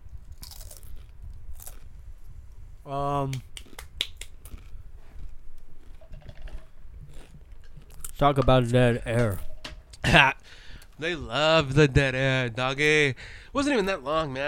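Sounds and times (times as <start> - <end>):
crunching on potato chips: 0.3 - 1.9, 4.4 - 8.2
speech: 2.9 - 3.5, 8.2 - 14.4.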